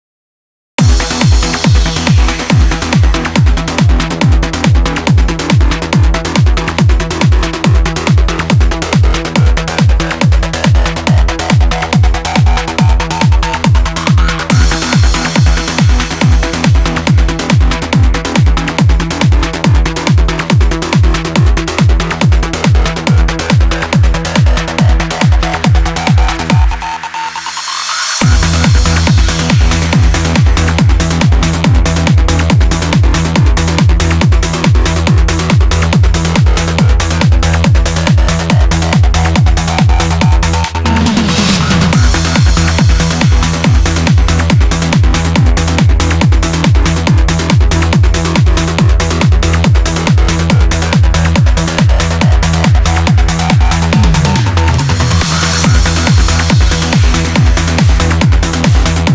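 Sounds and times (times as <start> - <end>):
trance music: 0.8 - 59.1.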